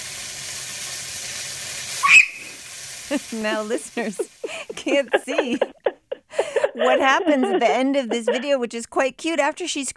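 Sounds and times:
chicken frying in hot oil: 0.0 - 4.7
speech: 3.1 - 5.8, 6.8 - 9.9
laughter: 3.1 - 8.7.

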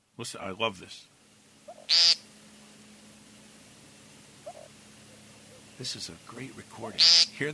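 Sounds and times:
speech: 0.2 - 1.2, 1.9 - 2.2, 5.8 - 7.5
American woodcock courtship display: 1.5 - 7.5.

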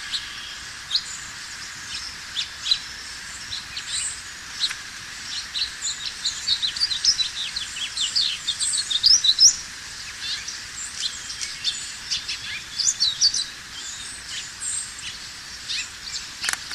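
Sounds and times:
house finch: 0.0 - 16.7.

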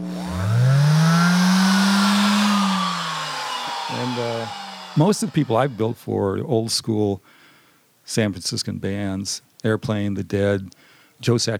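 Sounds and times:
hand sander running: 0.0 - 6.1
speech: 5.0 - 7.4, 8.1 - 11.5.

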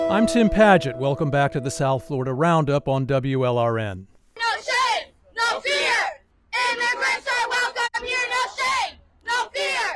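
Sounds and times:
speech: 0.1 - 4.1
Florida Immigrant Coalition activists chanting and shouting outside a Miami state senator's office: 4.3 - 9.9.

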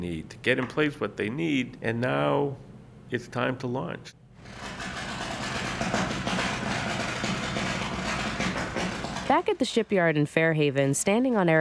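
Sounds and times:
speech: 0.0 - 4.8, 9.3 - 11.5
grinding of steel on a boat: 4.4 - 9.9.

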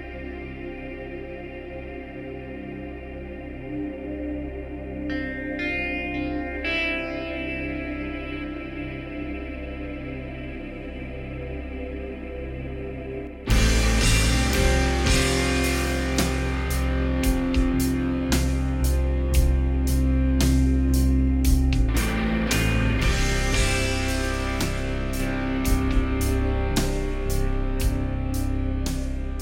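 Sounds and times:
sustained droning harmonic tone: 0.0 - 29.4
drone rock band playing: 13.5 - 29.4
heavy drums: 13.5 - 29.4.

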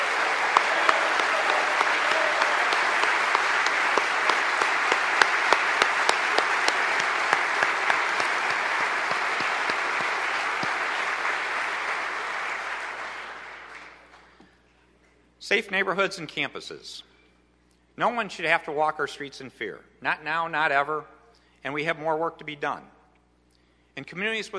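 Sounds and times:
audience round of applause: 0.0 - 14.3
speech: 15.5 - 17.1, 18.0 - 23.0, 24.0 - 24.5.

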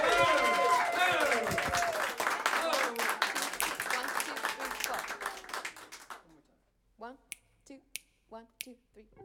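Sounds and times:
studio audience applause and cheering in a Seattle radio studio: 0.0 - 6.2.

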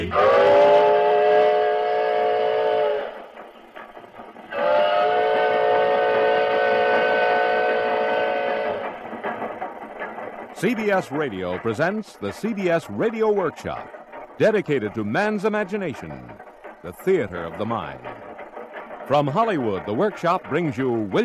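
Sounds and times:
steam locomotive whistle blasts: 0.0 - 3.2, 4.5 - 8.8
steam locomotive rumbling rhythmic chugging: 0.0 - 21.2
speech: 10.6 - 18.1, 19.1 - 21.2.

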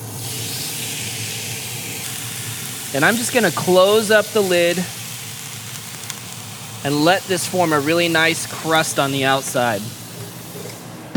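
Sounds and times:
Juicy Lucy burger patties stuffed with American cheese searing in a hot skillet: 0.0 - 10.9
speech: 2.9 - 5.0, 6.8 - 10.0.

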